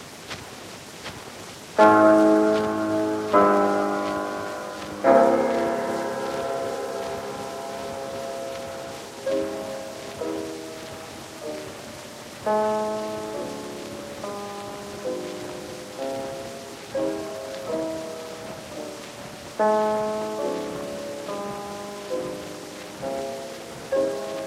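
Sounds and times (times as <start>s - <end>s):
dangerous piano: 1.8s - 24.4s.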